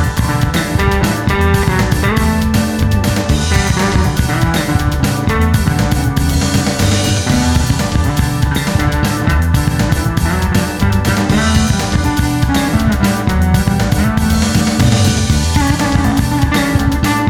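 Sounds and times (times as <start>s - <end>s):
jazz bass guitar riff adlib: 0.0s - 17.2s.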